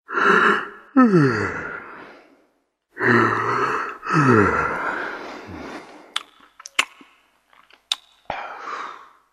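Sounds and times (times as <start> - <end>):
person yawning: 0.1 - 2.0, 3.0 - 4.9.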